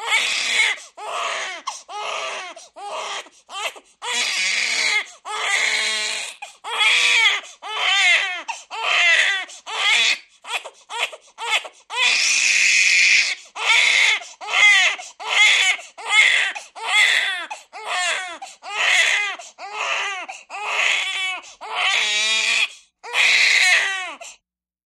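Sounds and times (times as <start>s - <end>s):
six-week-old baby girl crying hysterically indoors: 0.0s - 24.3s.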